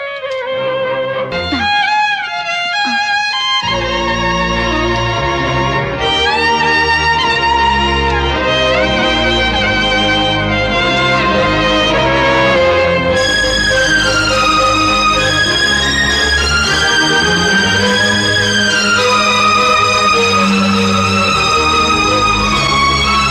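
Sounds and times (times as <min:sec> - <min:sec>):
sad background music ringtone: 0:00.2 - 0:23.2.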